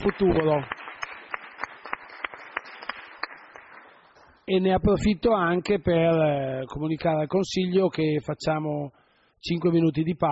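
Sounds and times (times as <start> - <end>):
applause: 0.0 - 4.4
speech: 0.2 - 0.8, 4.5 - 10.3.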